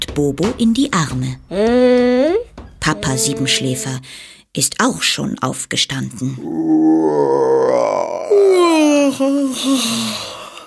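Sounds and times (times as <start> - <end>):
speech: 0.2 - 2.1, 2.9 - 10.3
person yawning: 6.5 - 10.6.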